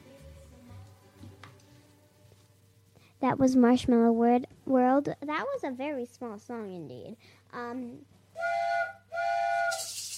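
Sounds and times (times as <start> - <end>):
speech: 3.2 - 8.1
train whistle of arriving train: 8.4 - 9.9.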